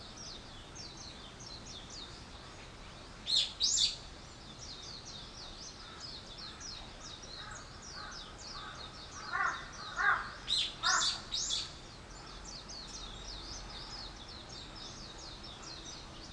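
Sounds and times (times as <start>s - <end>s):
bird chirps: 0.0s - 16.3s
hoarse cawing calls: 7.4s - 11.3s.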